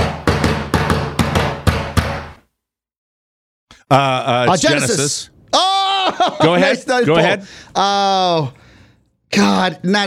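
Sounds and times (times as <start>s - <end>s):
knocking on a door: 0.0s - 2.4s
speech: 3.9s - 8.6s, 9.3s - 10.0s
laughter: 5.6s - 7.4s.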